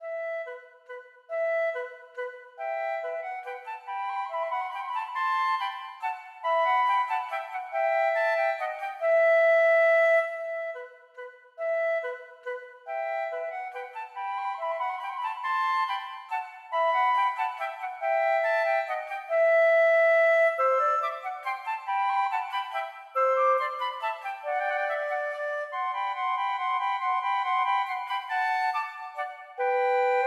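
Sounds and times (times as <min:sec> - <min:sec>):
flute duet playing a minuet: 0:00.0 - 0:30.2.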